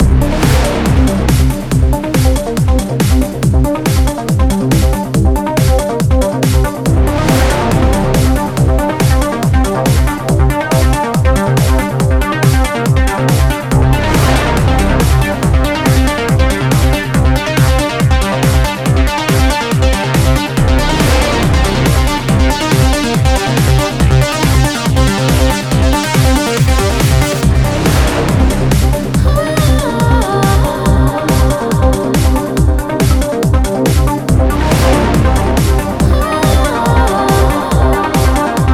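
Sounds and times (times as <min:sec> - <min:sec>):
goa trance synth: 0:00.0 - 0:38.7.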